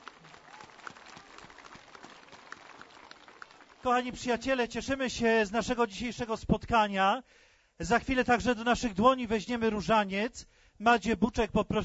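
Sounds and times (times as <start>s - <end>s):
audience applause: 0.0s - 4.2s
speech: 3.8s - 11.8s.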